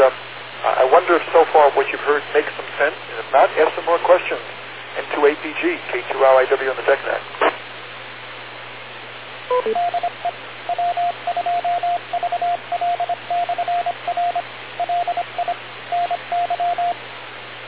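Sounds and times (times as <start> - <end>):
speech: 0.0 - 0.2, 1.1 - 7.5, 9.6 - 10.1
Morse code over radio: 9.5 - 17.0.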